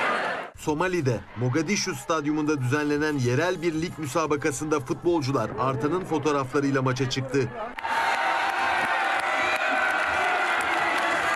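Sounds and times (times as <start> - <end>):
football crowd cheering and shouting at Mogadishu Stadium: 0.0 - 2.9, 7.5 - 11.3
speech: 0.6 - 8.0
clapping: 7.8 - 11.3.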